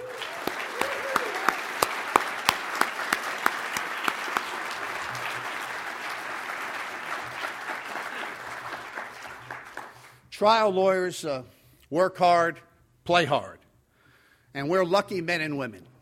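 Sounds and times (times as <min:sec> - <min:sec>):
audience applause: 0:00.0 - 0:10.2
speech: 0:10.4 - 0:13.6, 0:14.6 - 0:15.9.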